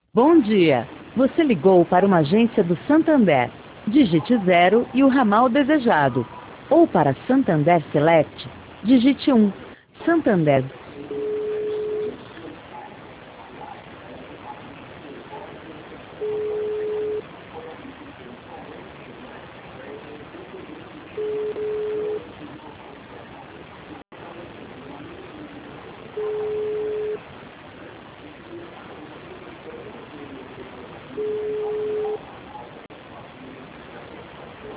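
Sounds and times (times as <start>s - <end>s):
constant hiss: 0.0s - 34.7s
speech: 0.2s - 11.2s
telephone ringback tone, call unanswered: 11.1s - 12.2s, 16.2s - 17.2s, 21.2s - 22.2s, 26.2s - 27.2s, 31.2s - 32.2s.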